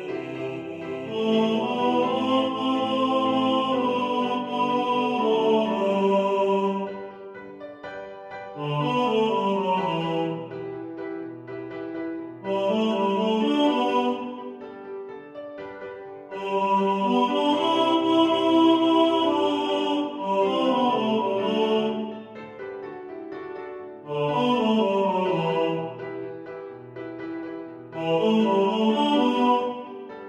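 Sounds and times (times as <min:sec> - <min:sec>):
tenor singing in the foreground: 0:00.0 - 0:07.3, 0:08.6 - 0:10.7, 0:12.4 - 0:14.6, 0:16.3 - 0:22.5, 0:24.1 - 0:26.3, 0:27.9 - 0:30.2
piano: 0:00.0 - 0:30.2.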